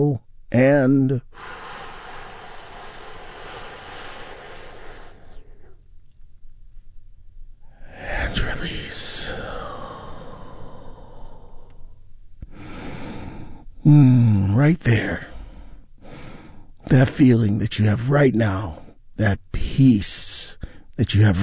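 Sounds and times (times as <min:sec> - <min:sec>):
speech: 0:00.0 - 0:01.6, 0:13.8 - 0:15.3, 0:16.9 - 0:21.4
deep breath in and out during a guided relaxation exercise: 0:01.2 - 0:05.9, 0:09.1 - 0:14.4, 0:15.2 - 0:16.8, 0:20.6 - 0:21.0.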